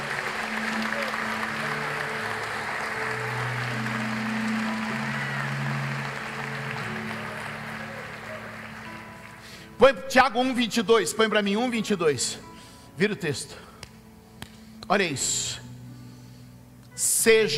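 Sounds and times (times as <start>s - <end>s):
audience applauding loudly: 0.0s - 9.8s
speech: 9.8s - 13.7s, 14.9s - 15.7s, 17.2s - 17.5s.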